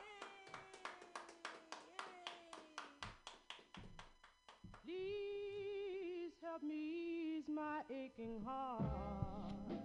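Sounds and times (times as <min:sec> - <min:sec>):
rhythmic hand clapping: 0:00.0 - 0:05.0
speech: 0:04.8 - 0:05.2, 0:06.6 - 0:09.7.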